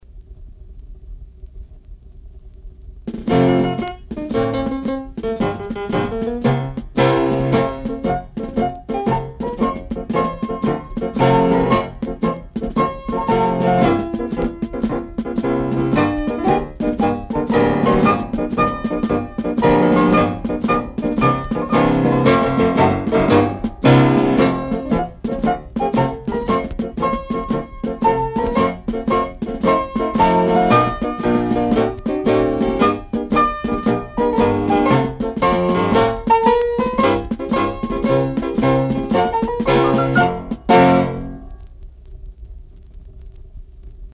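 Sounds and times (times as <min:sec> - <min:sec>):
marching: 0:03.0 - 0:41.7.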